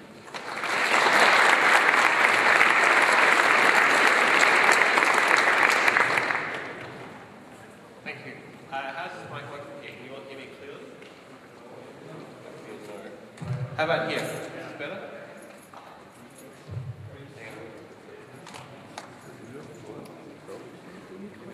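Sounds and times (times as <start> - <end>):
audience applause at a conference talk in Berlin: 0.0 - 7.1.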